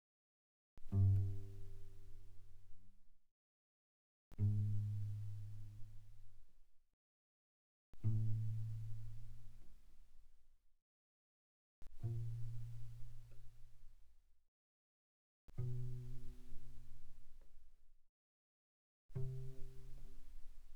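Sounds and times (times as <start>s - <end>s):
soft cello pizzicato on the G string: 0.8s - 2.9s, 4.3s - 6.4s, 8.0s - 9.9s, 11.8s - 13.8s, 15.5s - 17.6s, 19.1s - 20.7s.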